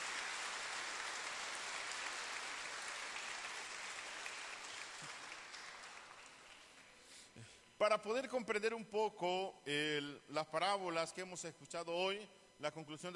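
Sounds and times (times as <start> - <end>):
audience applause: 0.0 - 6.9
speech: 7.4 - 13.1.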